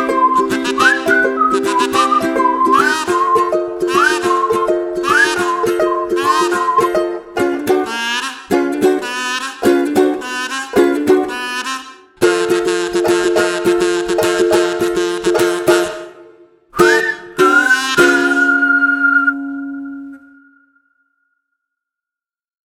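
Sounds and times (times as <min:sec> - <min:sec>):
whistle: 0:00.0 - 0:07.2, 0:07.8 - 0:12.1, 0:16.8 - 0:21.5
ukulele playing: 0:00.0 - 0:20.6.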